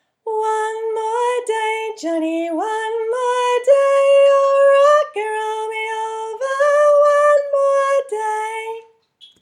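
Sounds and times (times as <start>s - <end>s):
soprano singing: 0.3s - 9.0s.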